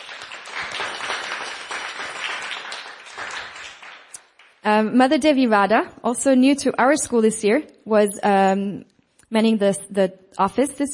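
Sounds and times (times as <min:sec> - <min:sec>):
round of applause from a crowd: 0:00.0 - 0:04.6
speech: 0:04.6 - 0:10.9.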